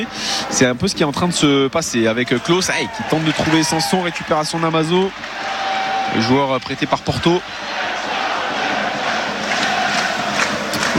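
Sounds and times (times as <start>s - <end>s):
speech: 0.0s - 7.9s
football crowd noise: 0.0s - 10.9s
football supporters applauding: 2.4s - 10.9s.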